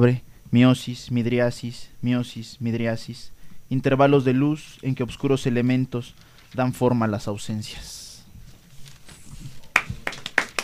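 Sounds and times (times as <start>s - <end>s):
speech: 0.0s - 8.0s
single person clapping at a spoken-word poetry event: 9.7s - 10.6s.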